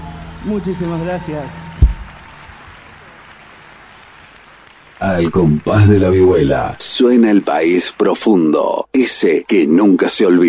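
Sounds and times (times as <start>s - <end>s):
speech: 0.4s - 1.6s, 5.1s - 10.4s
audience applause: 1.8s - 8.4s.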